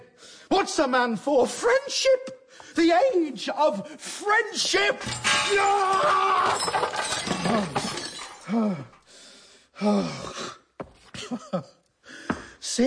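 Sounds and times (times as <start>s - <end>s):
speech: 0.6s - 7.8s, 8.5s - 8.9s, 9.8s - 10.6s, 11.3s - 11.8s
glass shattering as things are smashed up: 4.9s - 9.0s
person gasping and groaning: 7.3s - 9.1s, 9.8s - 10.7s.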